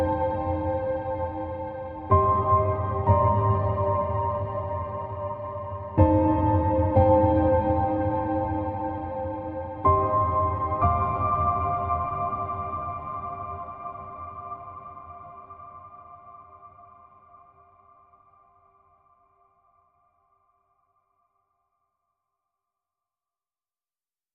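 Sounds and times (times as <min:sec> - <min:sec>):
piano music: 0:00.0 - 0:14.9.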